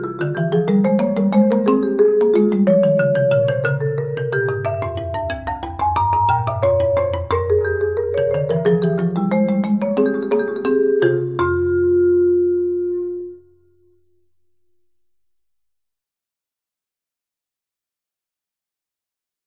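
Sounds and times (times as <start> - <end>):
mallets playing a two-part piece: 0.0 - 14.9.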